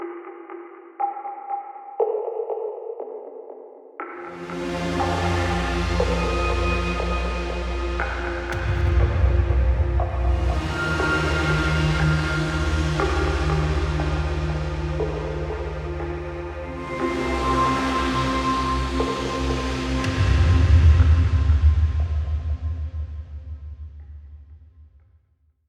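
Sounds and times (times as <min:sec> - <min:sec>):
random ambient sounds: 0:04.2 - 0:24.2.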